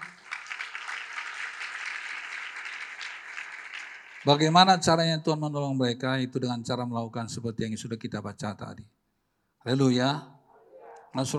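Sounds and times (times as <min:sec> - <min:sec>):
audience applause: 0:00.0 - 0:04.6
speech: 0:04.2 - 0:09.0, 0:09.6 - 0:10.4, 0:11.1 - 0:11.3.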